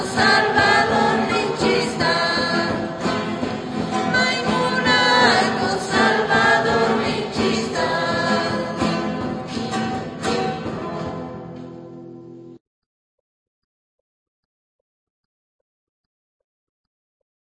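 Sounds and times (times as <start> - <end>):
people singing Quechua songs in northern Bolivia: 0.0 - 11.6.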